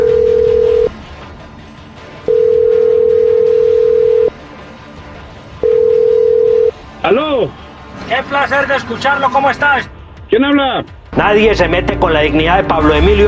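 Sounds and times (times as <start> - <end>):
telephone line tone: 0.0 - 0.9, 2.3 - 4.4, 5.6 - 6.7
speech: 7.1 - 13.2.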